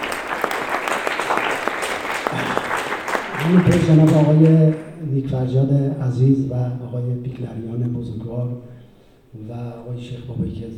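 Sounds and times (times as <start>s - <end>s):
festival audience applause: 0.0s - 4.8s
speech: 3.4s - 8.7s, 9.3s - 10.7s.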